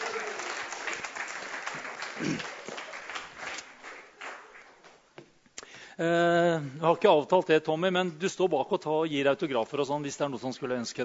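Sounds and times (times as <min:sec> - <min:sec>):
audience applause: 0:00.0 - 0:05.0
speech: 0:02.2 - 0:02.5, 0:06.0 - 0:11.0.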